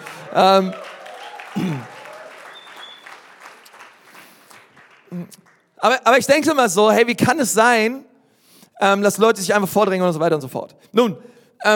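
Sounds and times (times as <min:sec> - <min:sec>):
audience applause: 0:00.0 - 0:05.6
speech: 0:00.3 - 0:00.8, 0:01.6 - 0:01.9, 0:05.3 - 0:08.1, 0:08.8 - 0:11.7.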